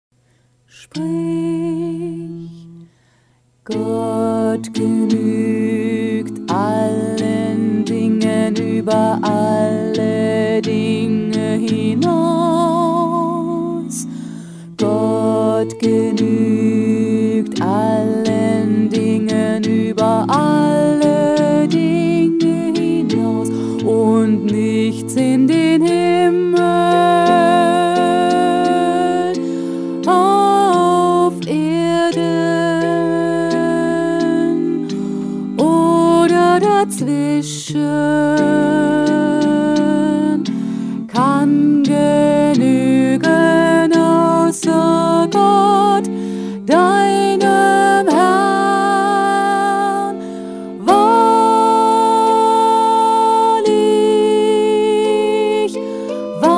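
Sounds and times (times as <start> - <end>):
choral music: 1.0 - 56.5
bass: 3.6 - 47.6.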